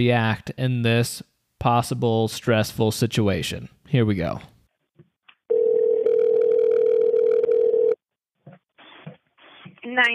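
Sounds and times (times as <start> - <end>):
speech: 0.0 - 4.5, 10.0 - 10.1
phone on speaker dial tone: 5.5 - 8.0.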